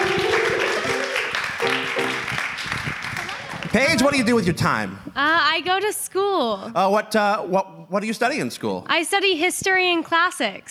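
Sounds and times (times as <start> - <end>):
audience applause: 0.0 - 4.1
speech: 3.7 - 10.7.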